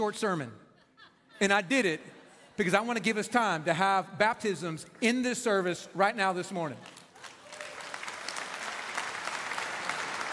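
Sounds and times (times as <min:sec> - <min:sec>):
speech: 0:00.0 - 0:00.6, 0:01.4 - 0:07.0
audience applause: 0:06.8 - 0:10.3.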